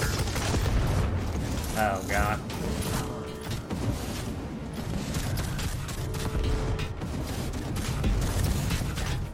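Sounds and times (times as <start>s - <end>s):
explosives detonating: 0.1s - 9.3s.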